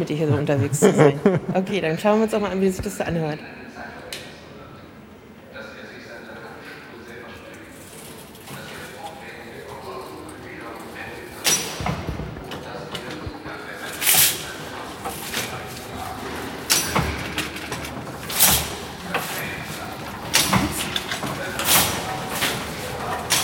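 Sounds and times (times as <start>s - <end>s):
laughter: 0.0s - 2.0s
speech: 0.0s - 3.6s
weaving machine starting: 7.8s - 23.4s.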